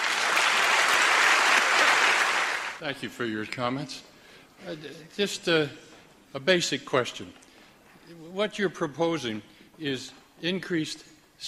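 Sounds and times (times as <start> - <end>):
large audience applauding an author at a book talk: 0.0 - 2.8
speech: 2.8 - 7.4, 8.1 - 11.4.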